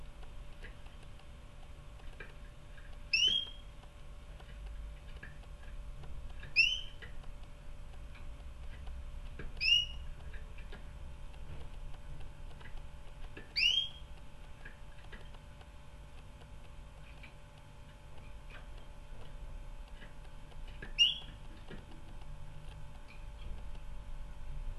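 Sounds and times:
low constant hum: 0.0 - 24.7
canary whistled call notes: 3.1 - 3.7, 6.5 - 7.0, 9.6 - 10.1, 13.5 - 14.1, 20.8 - 21.4.

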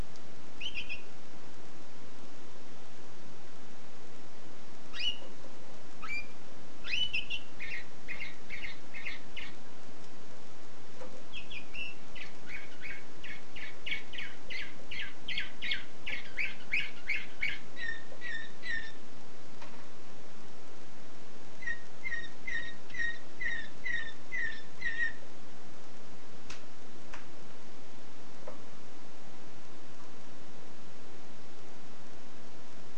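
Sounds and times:
constant hiss: 0.0 - 32.9
canary chirping: 0.6 - 1.2, 4.9 - 9.7, 11.3 - 19.1, 21.6 - 25.3.

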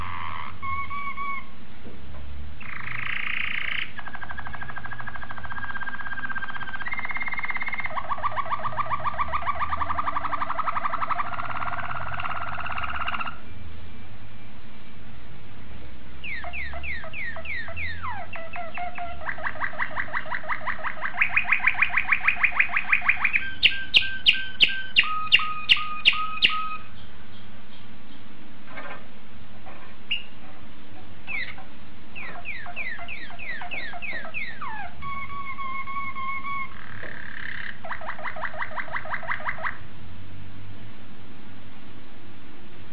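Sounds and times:
domestic canary singing: 0.0 - 1.6, 2.6 - 13.5, 16.2 - 29.0, 30.1 - 30.4, 31.2 - 39.9
low steady hum: 0.0 - 42.9.

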